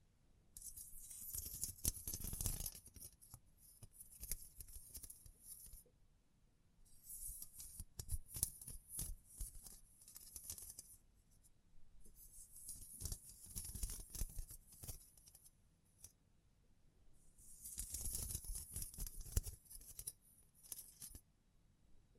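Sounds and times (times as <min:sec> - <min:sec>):
scratching, brushing and crinkling: 0:00.6 - 0:05.9, 0:06.9 - 0:11.0, 0:12.1 - 0:16.1, 0:17.4 - 0:21.2.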